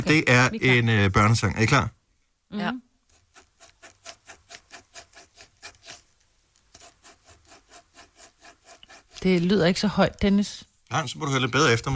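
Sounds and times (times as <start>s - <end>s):
speech: 0.0s - 2.9s, 9.2s - 11.9s
pen or pencil rhythmically drawing on paper: 3.1s - 6.1s, 6.7s - 9.6s.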